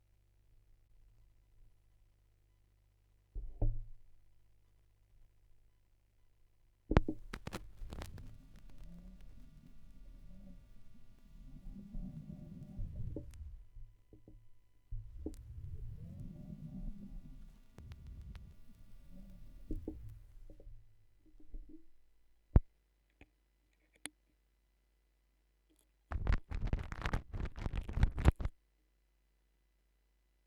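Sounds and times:
vinyl record noise: 0:06.9 - 0:13.7, 0:15.0 - 0:20.6, 0:26.1 - 0:28.5.

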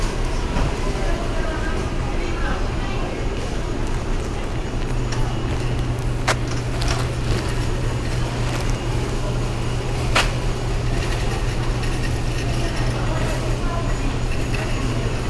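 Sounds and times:
supermarket ambience in Brazil: 0:00.0 - 0:15.2.

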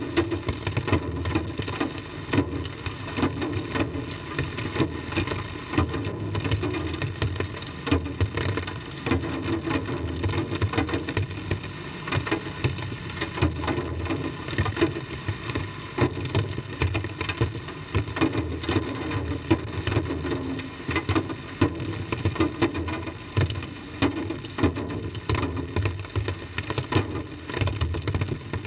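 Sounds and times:
drums with tape echo: 0:00.0 - 0:28.6
rain: 0:00.0 - 0:28.6.

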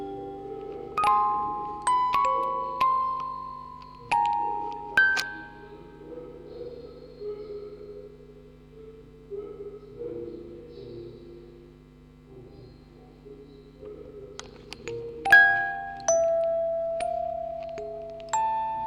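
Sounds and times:
four music boxes playing: 0:00.0 - 0:06.4, 0:14.4 - 0:18.8.

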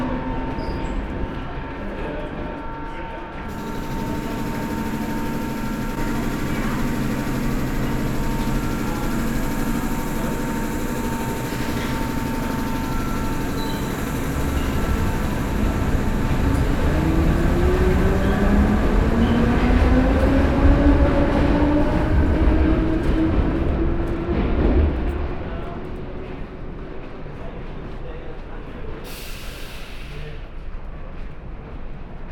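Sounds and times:
London Underground train: 0:00.0 - 0:32.2.

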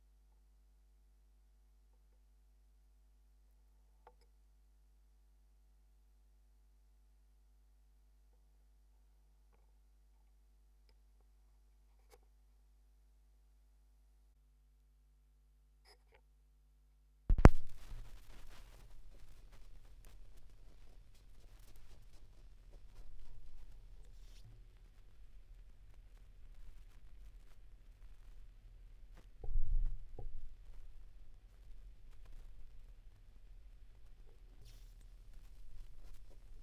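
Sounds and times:
vinyl record noise at 16 rpm: 0:17.3 - 0:36.6.

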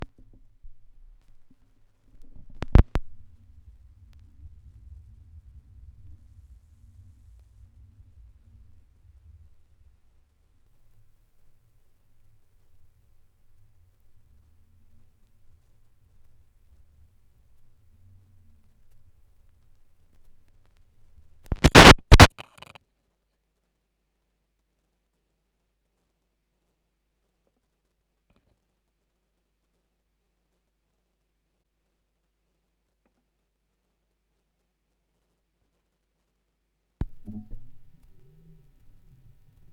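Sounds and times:
vinyl record noise: 0:00.0 - 0:22.8, 0:37.0 - 0:39.7.

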